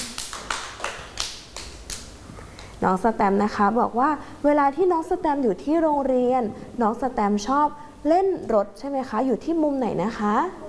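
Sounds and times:
hand clapping at a school with a young child: 0.0s - 2.7s
speech: 2.8s - 10.6s.

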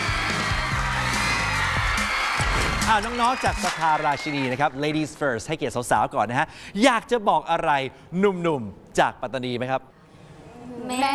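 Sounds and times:
audience cheering and whooping welcoming school student teams at a competition: 0.0s - 5.1s
speech: 2.9s - 10.0s, 10.6s - 11.1s.

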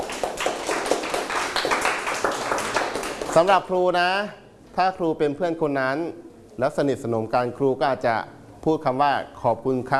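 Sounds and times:
classroom clapping for a classmate: 0.0s - 3.6s
speech: 3.4s - 9.9s.

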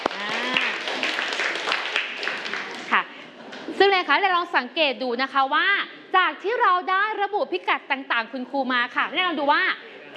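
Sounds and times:
students clapping for classmates: 0.0s - 3.0s
speech: 3.9s - 10.1s.

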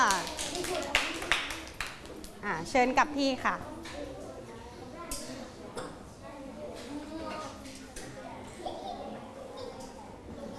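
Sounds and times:
scattered hand claps in a classroom: 0.0s - 2.4s
speech: 2.4s - 3.8s.

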